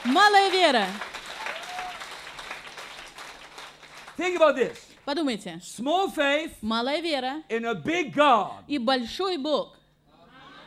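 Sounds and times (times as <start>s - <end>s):
church congregation applauding: 0.0s - 4.9s
speech: 0.2s - 1.1s, 4.2s - 9.8s.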